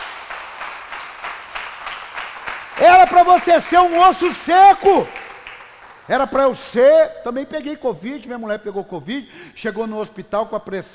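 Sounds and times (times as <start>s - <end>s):
audience applause: 0.0s - 6.2s
speech: 2.8s - 5.2s, 6.1s - 10.9s.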